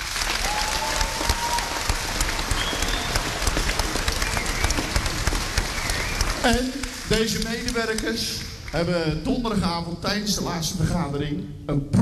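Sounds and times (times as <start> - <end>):
audience applause: 0.0 - 8.8
speech: 6.4 - 12.0.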